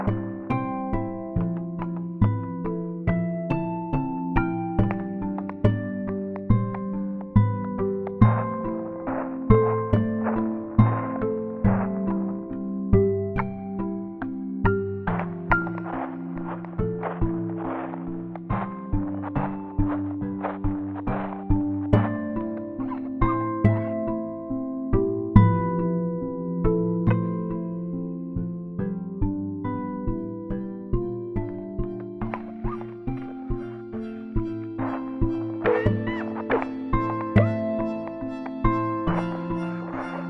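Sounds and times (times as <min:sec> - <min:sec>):
guitar: 0:00.0 - 0:40.2.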